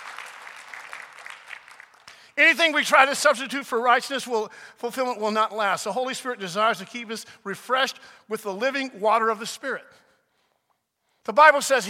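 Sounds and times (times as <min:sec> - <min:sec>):
audience applauding: 0:00.0 - 0:02.3
speech: 0:02.4 - 0:10.0, 0:11.2 - 0:11.8.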